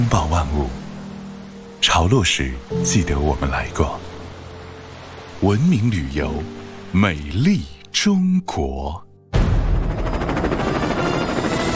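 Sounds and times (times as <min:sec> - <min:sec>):
speech: 0:00.0 - 0:00.8, 0:01.8 - 0:04.1, 0:05.4 - 0:09.0
helicopter approaching to land: 0:09.6 - 0:11.7.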